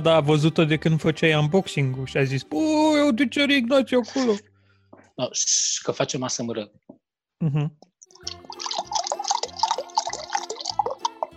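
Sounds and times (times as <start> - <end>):
speech: 0.0 - 4.5, 5.2 - 8.4
liquid gurgling while poured: 8.2 - 11.3.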